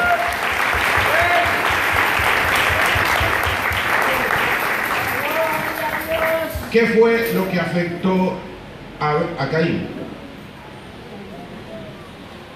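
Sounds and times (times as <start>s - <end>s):
loud audience applause: 0.0s - 6.9s
speech: 6.7s - 10.0s.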